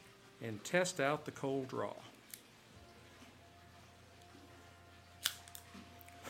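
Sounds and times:
quiet hiss: 0.0 - 6.2
speech: 0.4 - 2.1
cigar cut with a Cassetti combination guillotine and V-cutter: 5.2 - 6.2.

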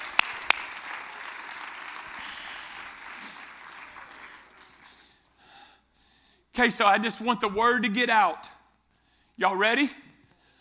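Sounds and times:
audience clapping hands: 0.0 - 5.3
speech: 6.6 - 8.5, 9.4 - 10.0.

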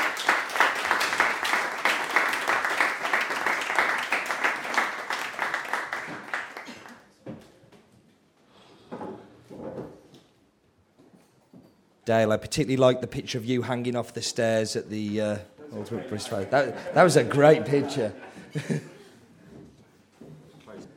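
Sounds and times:
audience applause: 0.0 - 7.0, 16.3 - 18.8
speech: 12.1 - 18.9
laughter: 15.6 - 19.3.

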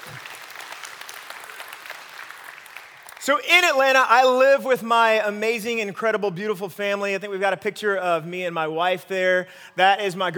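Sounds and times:
audience applause: 0.0 - 3.3
speech: 3.2 - 10.3.

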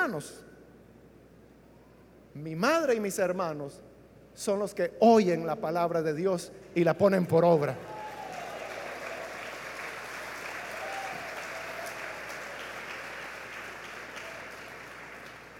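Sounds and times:
speech: 0.1 - 0.5, 2.4 - 8.0
audience applauding: 7.8 - 15.5.

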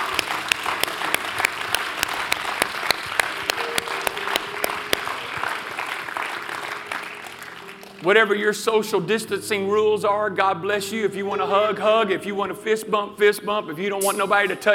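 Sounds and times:
audience applauding: 0.0 - 8.0
speech: 8.0 - 14.7.

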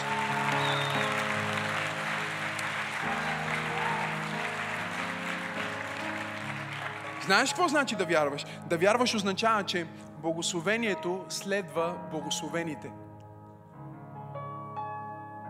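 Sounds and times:
crowd applauding: 0.0 - 8.4
speech: 7.3 - 13.0.

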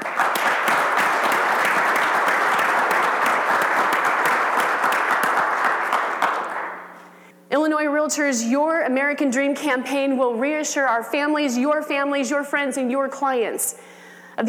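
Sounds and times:
audience applause: 0.0 - 7.0
speech: 8.1 - 14.4.

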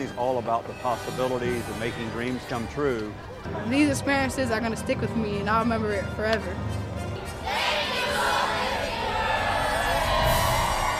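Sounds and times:
speech: 0.1 - 6.9
large crowd of theme park visitors roaring and cheering: 7.2 - 10.9.

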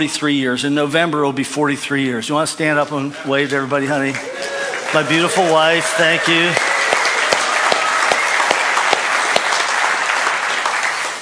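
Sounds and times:
speech: 0.0 - 6.7
audience applause: 3.6 - 11.1.

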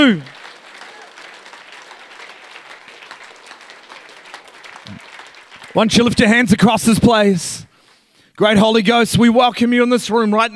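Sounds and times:
speech: 0.0 - 0.4, 5.8 - 7.7, 8.4 - 10.5
church congregation clapping during a worship service: 0.0 - 6.9.

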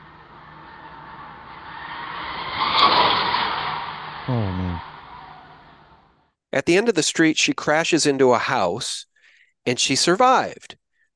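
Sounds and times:
car speeding through residential neighborhood: 0.0 - 6.1
speech: 4.3 - 4.9, 6.5 - 11.1.

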